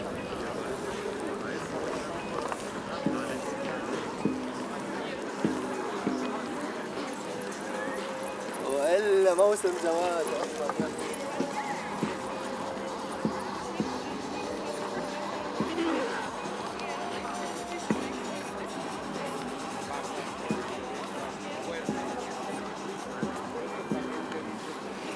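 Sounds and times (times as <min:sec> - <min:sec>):
murmur of many voices of a crowd on the Tempelhofer Freiheit in Berlin: 0:00.0 - 0:25.1.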